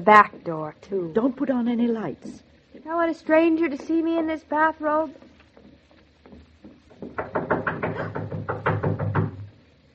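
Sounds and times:
speech: 0.0s - 5.3s
hard knocking on the back door: 6.7s - 9.6s.

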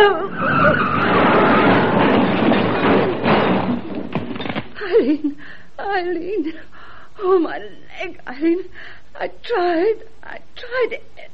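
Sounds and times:
car skidding with failing brakes: 0.3s - 3.2s
thuds: 0.4s - 4.8s
speech: 5.1s - 11.3s.

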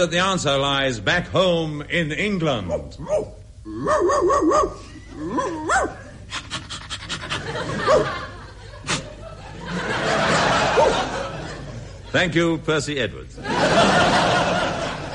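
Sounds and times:
speech: 0.0s - 6.5s, 7.4s - 8.3s, 12.1s - 14.6s
person imitating dog yelps, barks and panting: 2.7s - 8.1s
laughter: 6.6s - 12.3s, 13.4s - 15.1s.

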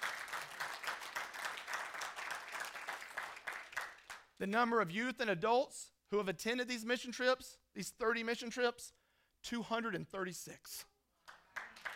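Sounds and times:
audience applause: 0.0s - 4.2s, 11.3s - 11.9s
speech: 4.4s - 10.9s.

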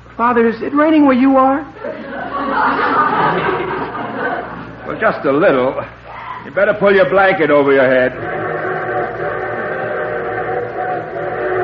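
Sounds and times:
speech: 0.2s - 8.4s
laughter: 1.8s - 5.5s
train whistle: 8.1s - 11.6s.

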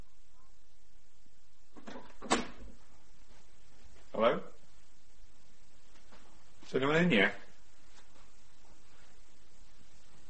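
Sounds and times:
door opening: 1.8s - 2.8s
speech: 6.8s - 7.4s.

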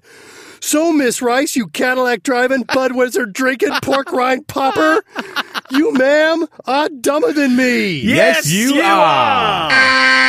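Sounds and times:
speech: 0.7s - 10.2s
laughter: 2.6s - 6.5s
alarm sound effect: 9.6s - 10.2s.

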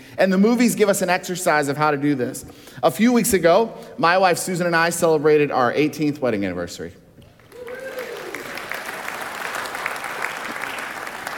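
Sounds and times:
speech: 0.2s - 7.0s
cheers and whoops: 7.4s - 9.8s
audience applauding: 7.4s - 11.3s.

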